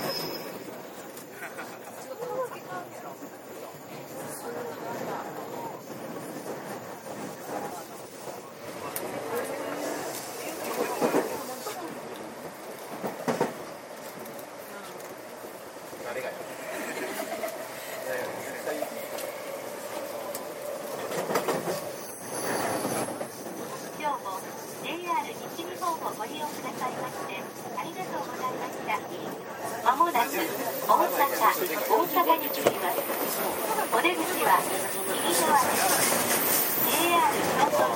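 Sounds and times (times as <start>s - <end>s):
JR 323 series train rolling rumble: 0.0s - 37.9s
passengers murmuring aboard JR 323 series train at Momodani: 0.0s - 37.9s
laughter: 1.3s - 2.2s, 16.5s - 17.8s.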